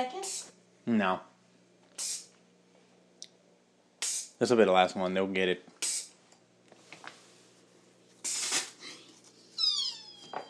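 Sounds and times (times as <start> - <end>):
speech: 0.0 - 1.3, 4.4 - 5.7
shaken carbonated drink spraying out: 8.2 - 8.8
high squeaky whine: 9.5 - 10.4.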